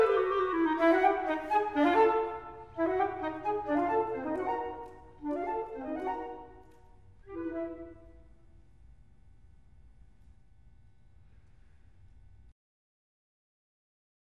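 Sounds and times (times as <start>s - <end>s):
flute and clarinet duet: 0.0s - 8.5s.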